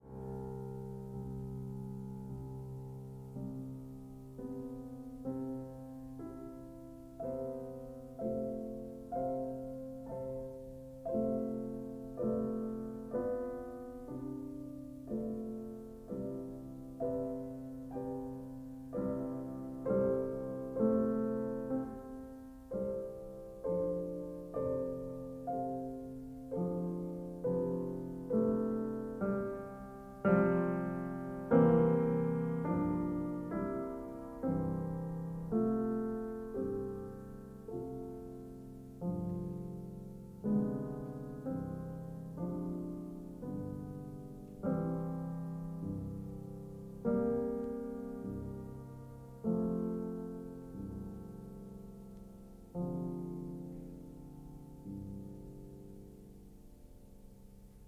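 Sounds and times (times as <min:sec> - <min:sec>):
piano sonata second movement coda: 0:00.0 - 0:57.8.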